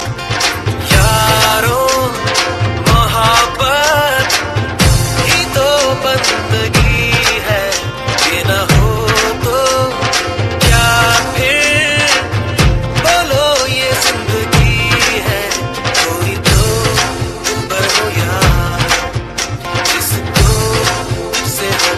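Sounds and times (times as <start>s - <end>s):
dhol drum: 0.0s - 21.9s.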